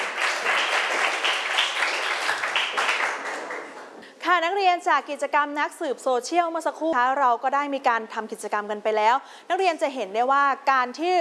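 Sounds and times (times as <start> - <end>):
students applauding: 0.0 - 4.0
speech: 4.4 - 11.1.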